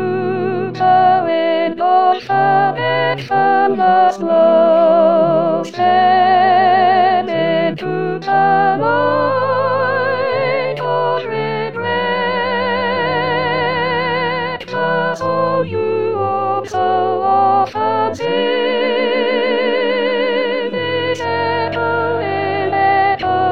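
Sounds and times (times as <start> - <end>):
soprano melody: 0.0 - 23.4.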